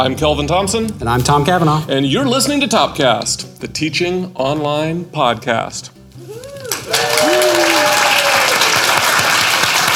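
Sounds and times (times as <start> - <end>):
speech: 0.0 - 7.4
applause sound effect from button: 6.4 - 9.9.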